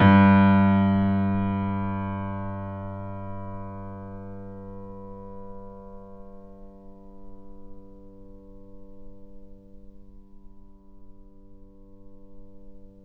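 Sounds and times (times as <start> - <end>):
grand piano recorded off mic: 0.0 - 9.5.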